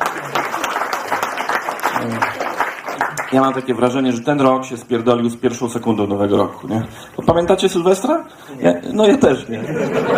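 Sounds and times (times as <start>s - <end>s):
audience applause: 0.0s - 3.8s
speech: 2.0s - 2.4s, 3.3s - 10.1s
laughter: 9.5s - 10.1s.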